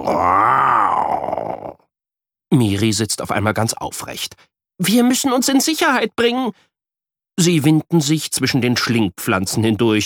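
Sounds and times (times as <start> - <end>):
person growling imitating a tiger: 0.0 - 1.9
speech: 2.8 - 6.7, 7.4 - 10.0.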